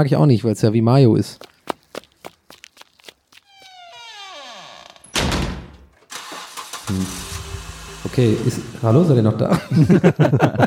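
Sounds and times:
speech: 0.0 - 1.5, 6.9 - 7.2, 8.2 - 10.6
car driving away: 6.1 - 9.6
laughter: 8.4 - 10.6.

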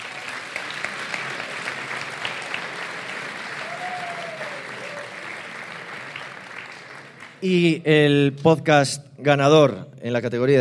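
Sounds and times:
audience applause for nominees: 0.0 - 7.5
speech: 7.4 - 10.5.

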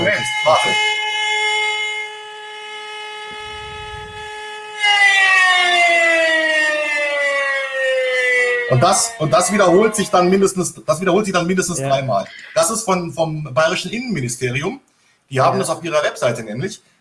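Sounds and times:
speech: 0.0 - 0.9, 8.7 - 16.9
civil defense warning siren: 0.0 - 11.6
brief low rumble: 3.3 - 4.4.

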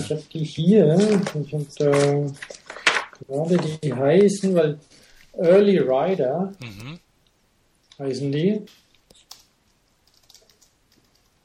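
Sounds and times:
speech: 0.0 - 7.0, 8.0 - 8.8
typing on a computer keyboard: 9.3 - 11.4.

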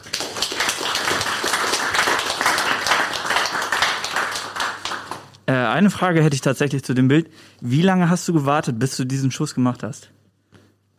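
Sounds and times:
group of people applauding: 0.0 - 5.4
speech: 5.5 - 10.2.

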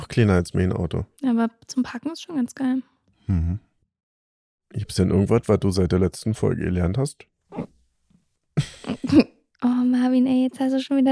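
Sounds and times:
speech: 0.2 - 3.7, 4.7 - 7.7, 8.6 - 11.1
single hiccup: 7.5 - 7.8.

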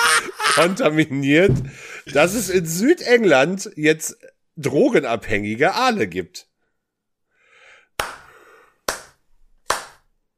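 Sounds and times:
laughter: 0.0 - 1.0
speech: 0.6 - 6.5
clapping: 8.0 - 8.3, 8.9 - 10.1.

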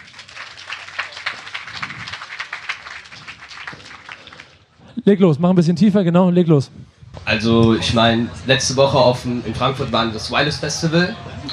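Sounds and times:
audience applause: 0.0 - 4.6
speech: 5.0 - 11.5.

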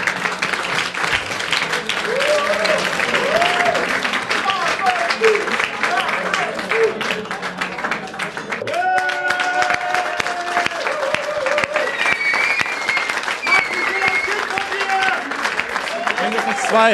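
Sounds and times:
loud sustained applause from a large audience: 0.0 - 16.9
cheers and scattered voices: 2.0 - 7.2, 8.6 - 16.9.

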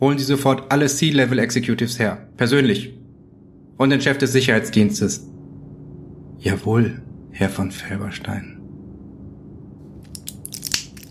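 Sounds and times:
speech: 0.0 - 3.0, 3.8 - 5.3, 6.4 - 8.6
low hum: 0.0 - 11.0
tablet pushed out of a blister pack: 10.1 - 11.0.

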